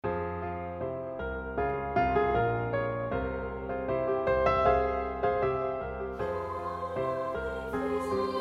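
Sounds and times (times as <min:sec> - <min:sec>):
bass: 0:00.0 - 0:08.3.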